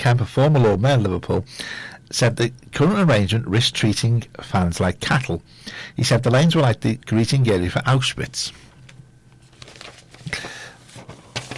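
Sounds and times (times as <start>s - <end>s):
speech: 0.0s - 8.7s
paper crumpling and rustling: 9.4s - 11.5s.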